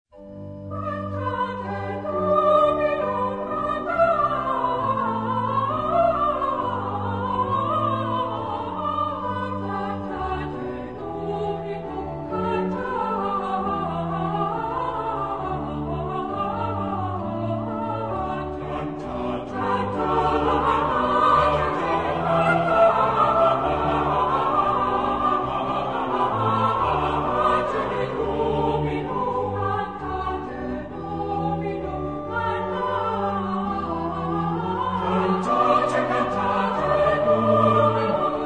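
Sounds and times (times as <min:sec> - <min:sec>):
choir with soprano and bass singing: 0:00.6 - 0:38.4.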